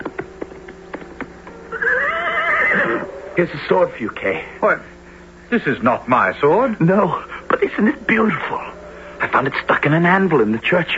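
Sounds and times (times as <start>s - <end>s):
horse galloping: 0.0s - 2.9s
horse whinnying: 1.7s - 3.1s
speech: 3.4s - 10.9s.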